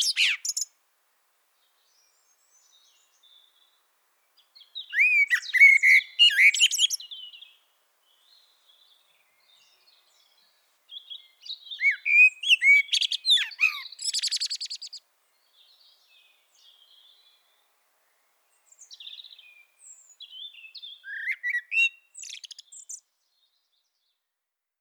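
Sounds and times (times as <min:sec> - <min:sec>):
common blackbird singing: 0:00.0 - 0:00.7, 0:04.5 - 0:17.6, 0:18.6 - 0:24.0.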